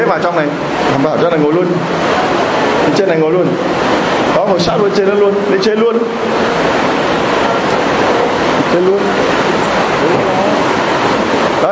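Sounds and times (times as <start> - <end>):
heavy rain: 0.0 - 11.7
speech: 0.1 - 2.3, 2.9 - 6.8, 8.7 - 10.4
faint voices murmuring: 6.5 - 11.0.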